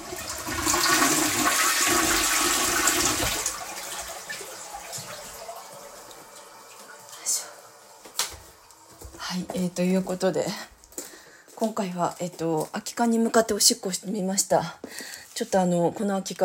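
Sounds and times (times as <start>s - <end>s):
toilet flushing: 0.0s - 9.2s
speech: 9.6s - 10.7s, 11.6s - 16.4s.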